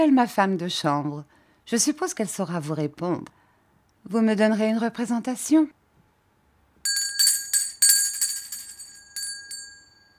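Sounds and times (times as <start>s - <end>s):
speech: 0.0s - 3.4s, 4.0s - 5.8s
bell ringing as signal or alarm: 6.9s - 10.1s.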